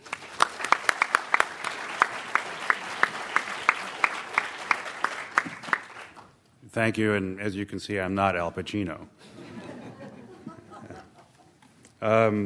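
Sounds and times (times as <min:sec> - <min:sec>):
audience at an evening talk clapping for a speaker: 0:00.0 - 0:06.4
speech: 0:06.8 - 0:09.3, 0:12.0 - 0:12.4
laughter: 0:09.2 - 0:11.6.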